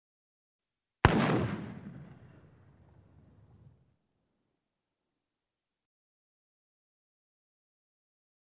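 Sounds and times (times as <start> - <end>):
gunshot: 1.0 - 2.7.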